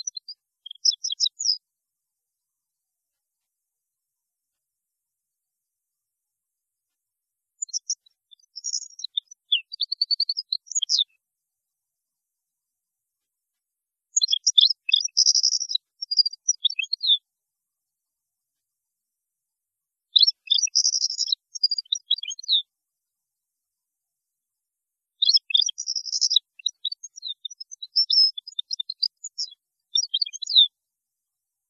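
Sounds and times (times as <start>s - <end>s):
European goldfinch song: 0.0s - 1.6s, 7.6s - 11.1s, 14.2s - 17.2s, 20.1s - 22.6s, 25.2s - 30.7s.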